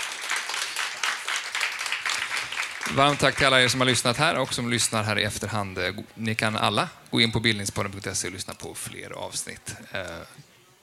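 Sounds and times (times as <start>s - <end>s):
audience applause: 0.0s - 4.3s
speech: 2.8s - 10.5s.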